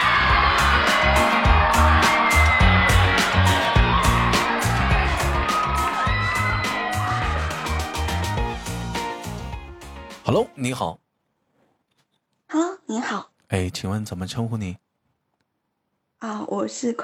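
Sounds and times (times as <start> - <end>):
audience applause: 0.0 - 9.5
crowd cheering and whooping: 0.0 - 9.5
speech: 10.3 - 11.0, 12.5 - 14.8, 16.2 - 17.0.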